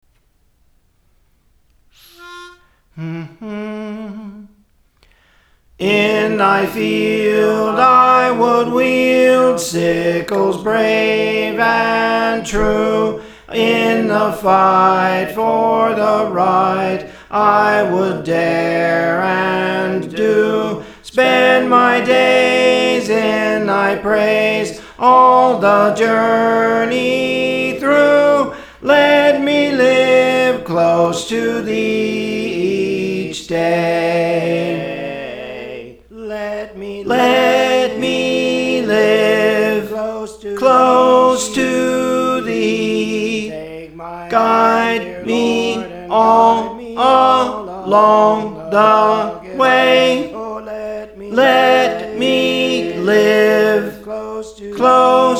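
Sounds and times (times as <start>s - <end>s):
soprano singing: 2.0s - 4.6s, 5.8s - 55.3s.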